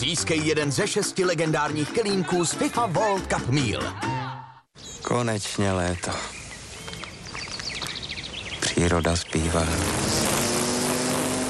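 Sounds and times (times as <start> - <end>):
speech: 0.0 - 4.3, 5.0 - 6.4, 8.8 - 10.3
laughter: 1.8 - 4.7
lawnmowers mowing: 9.4 - 11.4.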